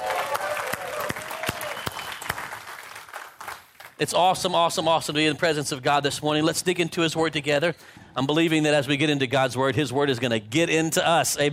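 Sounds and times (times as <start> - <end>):
crowd clapping: 0.0 - 4.0
speech: 4.0 - 11.5.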